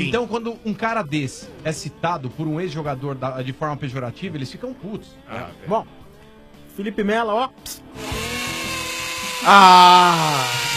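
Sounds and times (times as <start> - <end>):
speech: 0.0 - 6.0, 6.8 - 8.1, 9.4 - 10.7
electric drill whirring: 8.0 - 10.7.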